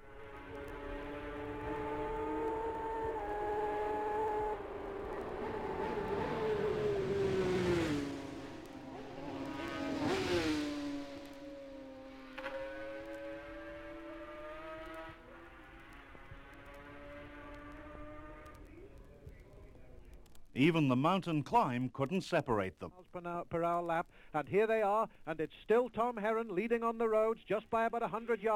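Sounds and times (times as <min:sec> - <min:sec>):
racing motorcycles speeding past at Schoolhouse Corner in Ramsey: 0:00.0 - 0:20.3
speech: 0:20.6 - 0:28.5.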